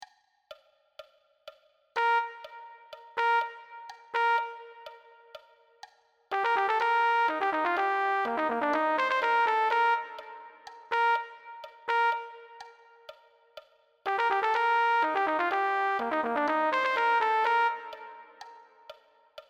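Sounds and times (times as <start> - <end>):
trumpet: 2.0 - 5.5, 6.3 - 13.3, 14.1 - 19.0.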